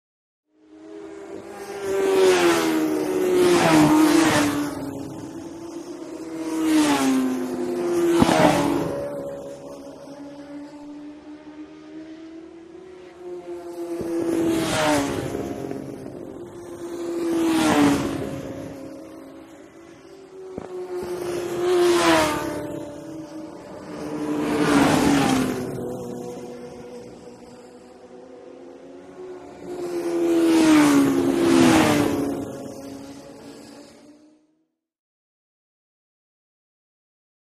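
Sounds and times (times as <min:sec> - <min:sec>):
motorcycles road racing: 0:00.5 - 0:34.6.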